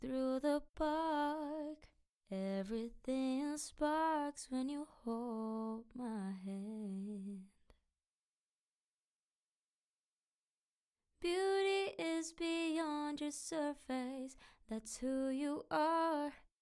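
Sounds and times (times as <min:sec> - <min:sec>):
a cappella pop singing in C major: 0:00.0 - 0:07.6, 0:11.2 - 0:16.5.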